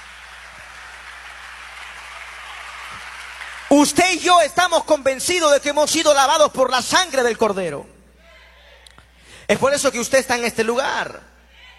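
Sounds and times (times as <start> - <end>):
audience applauding: 0.0 - 4.0
speech: 3.7 - 7.9, 9.5 - 11.3.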